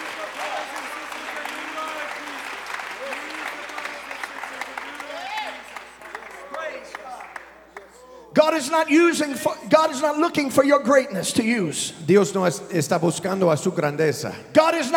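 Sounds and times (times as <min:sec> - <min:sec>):
audience clapping hands: 0:00.0 - 0:08.0
speech: 0:08.5 - 0:14.9.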